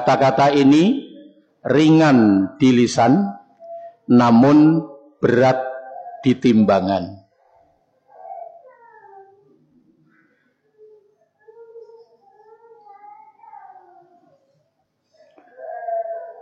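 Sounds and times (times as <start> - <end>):
speech: 0.1 - 1.0, 1.6 - 3.4, 4.1 - 7.2
small child crying during a religious talk: 8.0 - 9.6, 10.8 - 14.4, 15.4 - 16.4.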